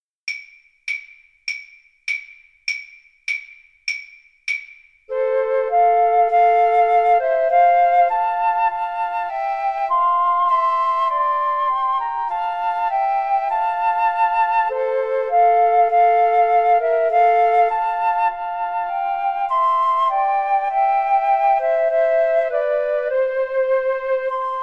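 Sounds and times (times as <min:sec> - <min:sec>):
flute trio playing: 0:05.1 - 0:24.6.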